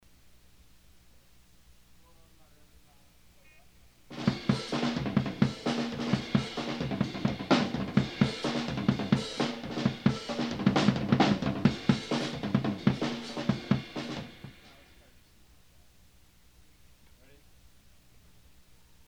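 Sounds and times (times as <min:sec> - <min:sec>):
drums: 0:03.7 - 0:15.2.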